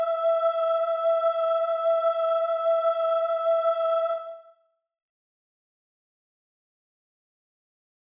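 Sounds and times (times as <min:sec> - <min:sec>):
soprano singing: 0:00.0 - 0:04.6.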